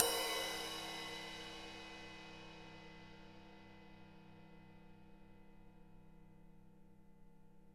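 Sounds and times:
EMU PX-7 drum machine crash cymbal: 0:00.0 - 0:02.4.

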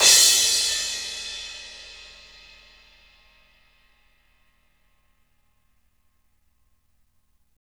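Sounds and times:
ride crash cymbal: 0:00.0 - 0:03.0.

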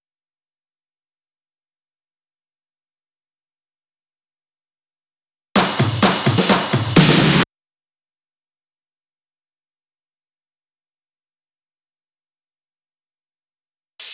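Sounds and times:
drum and percussion fills at 128 BPM: 0:05.6 - 0:07.5.

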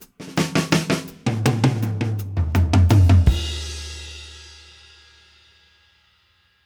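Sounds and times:
drum fills: 0:00.0 - 0:04.7.

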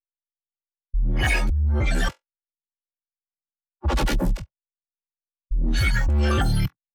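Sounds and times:
bass loop: 0:01.0 - 0:01.7, 0:05.5 - 0:06.5.

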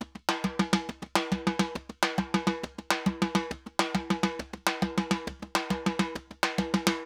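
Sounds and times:
timba Latin drums and percussion: 0:00.0 - 0:07.0.

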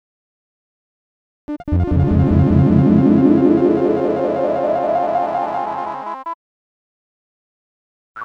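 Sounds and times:
looping sound effect: 0:01.5 - 0:06.1.

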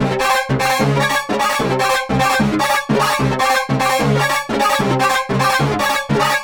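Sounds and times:
horns: 0:00.0 - 0:06.4.

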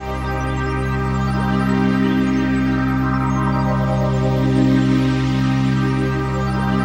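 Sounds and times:
dance mega synth pad: 0:00.0 - 0:06.8.

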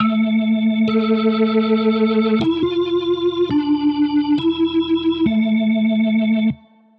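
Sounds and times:
drum and bass synth loop: 0:00.0 - 0:06.5.

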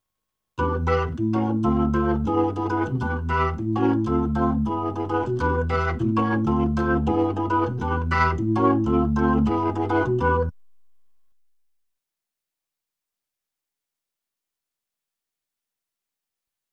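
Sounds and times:
Hammond B3 organ: 0:00.6 - 0:10.6.

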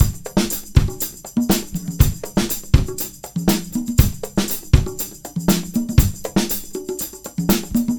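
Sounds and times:
R&B drums: 0:00.0 - 0:07.9.

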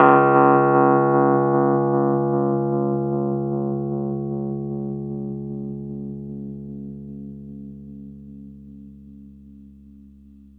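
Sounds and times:
Rhodes electric piano in D flat: 0:00.0 - 0:07.6.

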